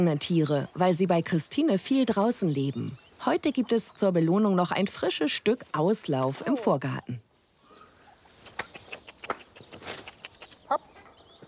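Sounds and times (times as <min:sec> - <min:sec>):
speech: 0:00.0 - 0:07.2
young turkeys chirping and peeping in a busy flock: 0:07.6 - 0:11.4.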